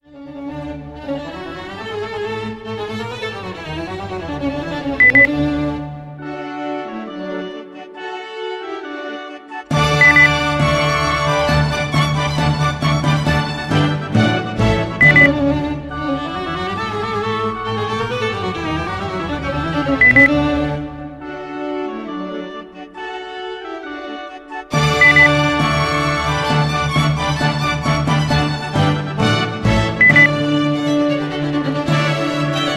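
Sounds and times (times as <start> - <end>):
classical orchestral overture: 0.0 - 32.7
electronic beep: 5.0 - 5.3, 10.0 - 10.4, 15.0 - 15.3, 20.0 - 20.3, 25.0 - 25.4, 30.0 - 30.4.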